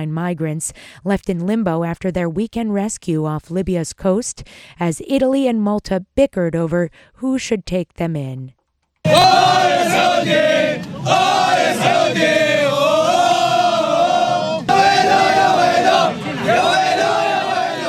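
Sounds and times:
speech: 0:00.0 - 0:13.0
World Cup fans chanting and cheering in Russia before the opening match: 0:09.1 - 0:17.8.

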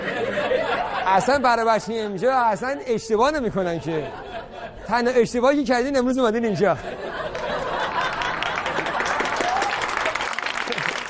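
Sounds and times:
laughter: 0:00.0 - 0:11.0
speech: 0:01.1 - 0:04.3, 0:04.9 - 0:07.0
audience clapping: 0:07.3 - 0:11.0.

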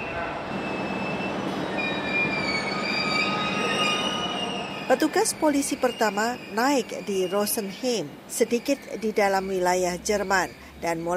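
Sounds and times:
train carriage rolling on rails: 0:00.0 - 0:10.4
metallic wheel squeals: 0:00.6 - 0:11.1
speech: 0:04.9 - 0:11.1.

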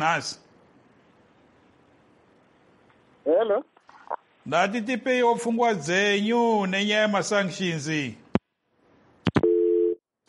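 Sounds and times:
speech: 0:00.0 - 0:00.4, 0:03.4 - 0:03.7, 0:04.5 - 0:08.2
telephone busy tone after a call drops: 0:09.4 - 0:10.0.

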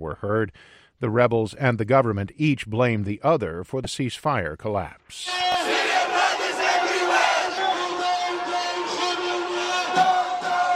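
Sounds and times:
speech: 0:00.0 - 0:05.6
protest crowd chanting: 0:05.4 - 0:10.7.

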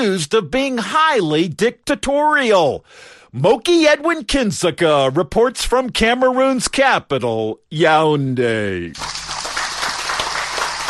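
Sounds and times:
speech: 0:00.0 - 0:09.2
large crowd of fans applauding: 0:09.0 - 0:10.8.

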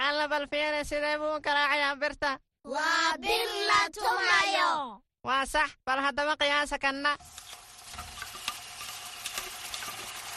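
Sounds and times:
speech: 0:00.2 - 0:07.4
something sweet frying in a restaurant kitchen: 0:07.2 - 0:10.3.

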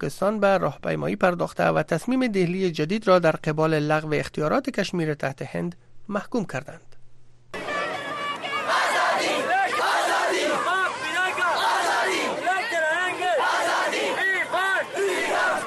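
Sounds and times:
speech: 0:00.0 - 0:06.9
protest crowd chanting slogans: 0:07.6 - 0:15.6.

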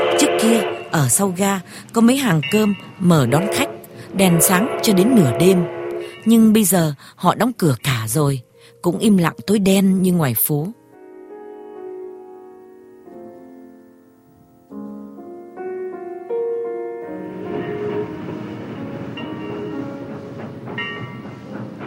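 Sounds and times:
train whistle: 0:00.0 - 0:01.2, 0:03.2 - 0:06.3
train approaching: 0:00.0 - 0:10.1, 0:14.9 - 0:21.8
speech: 0:00.4 - 0:10.8.

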